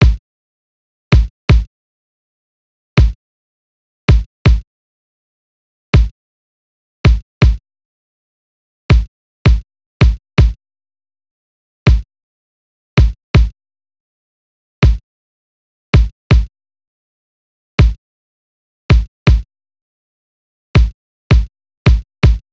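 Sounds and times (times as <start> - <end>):
kick drum in C minor at 81 BPM: 0.0 - 0.2, 1.2 - 1.7, 3.0 - 3.2, 4.1 - 4.6, 6.0 - 6.2, 7.1 - 7.6, 8.9 - 10.6, 11.9 - 12.1, 13.0 - 13.6, 14.8 - 15.0, 16.0 - 16.5, 17.8 - 18.0, 18.9 - 19.5, 20.8 - 22.4.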